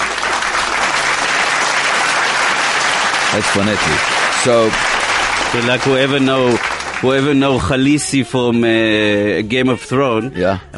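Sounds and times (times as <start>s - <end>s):
applause sound effect: 0.0s - 8.5s
speech: 3.4s - 10.7s.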